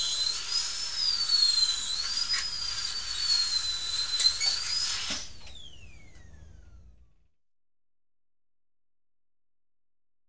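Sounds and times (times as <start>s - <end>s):
dentist's drill: 0.0s - 6.3s.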